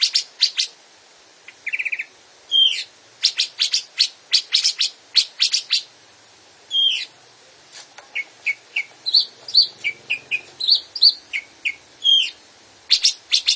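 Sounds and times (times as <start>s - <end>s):
Grey-cheeked bulbul song: 0.0s - 0.8s, 1.4s - 6.0s, 6.7s - 7.2s, 8.0s - 13.5s.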